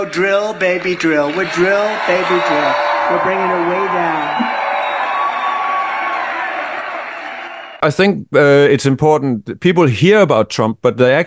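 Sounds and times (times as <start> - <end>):
speech: 0.0 - 4.6, 7.8 - 11.2
crowd cheering and applauding: 0.0 - 7.8.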